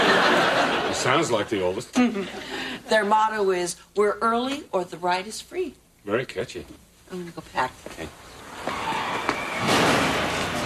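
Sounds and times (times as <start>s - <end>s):
laughter: 0.0s - 2.5s
speech: 1.0s - 9.0s
car crashing into a mailbox: 8.5s - 10.6s.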